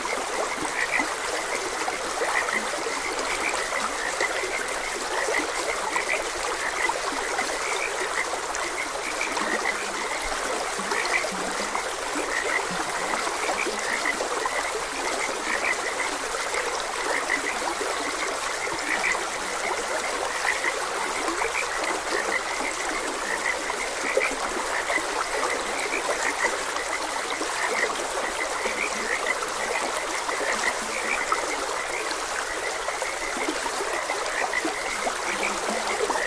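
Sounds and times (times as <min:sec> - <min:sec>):
frog chorus croaking: 0:00.0 - 0:36.2
trickling stream: 0:00.0 - 0:36.2.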